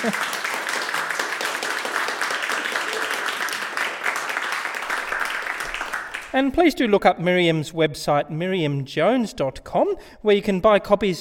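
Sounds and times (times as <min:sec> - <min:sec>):
speech: 0:00.0 - 0:00.4, 0:06.3 - 0:11.1
audience applause: 0:00.0 - 0:06.4.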